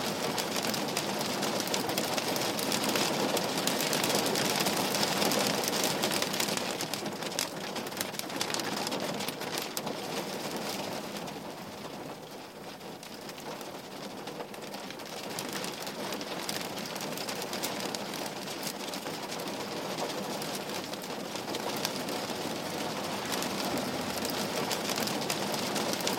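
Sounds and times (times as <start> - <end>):
rain lashing against a window: 0.0 - 26.1.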